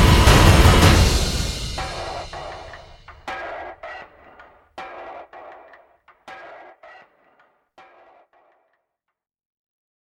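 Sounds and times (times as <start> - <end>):
drum effects: 0.0 - 7.1.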